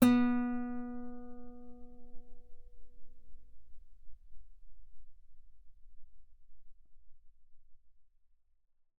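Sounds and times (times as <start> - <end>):
guitar note B3 played fortissimo on the B string: 0.0 - 2.2.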